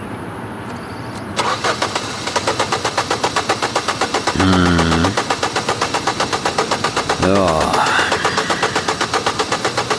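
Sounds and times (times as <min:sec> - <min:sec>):
car starter cranking, engine failing to start: 0:01.4 - 0:09.9.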